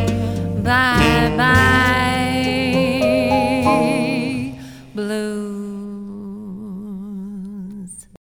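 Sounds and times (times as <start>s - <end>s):
blues music: 0.0s - 5.1s.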